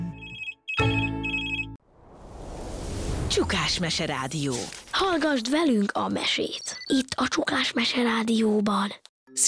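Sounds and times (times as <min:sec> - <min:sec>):
mobile phone melodic ringtone of bright beeping notes: 0:00.2 - 0:01.8
speech: 0:03.3 - 0:09.4.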